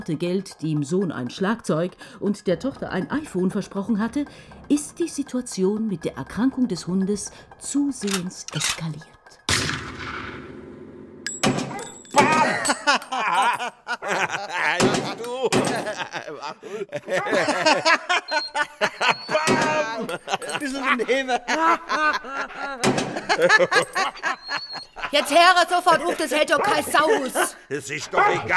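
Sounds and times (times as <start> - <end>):
speech: 0.0 - 9.2, 16.5 - 18.9, 20.0 - 28.5
small-caliber gunshots: 9.5 - 10.6
laughter: 12.2 - 28.5.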